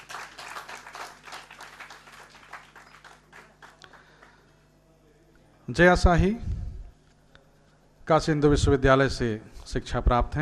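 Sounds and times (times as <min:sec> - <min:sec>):
audience applause welcoming musicians: 0:00.0 - 0:04.4
speech: 0:05.7 - 0:06.5, 0:08.1 - 0:10.3.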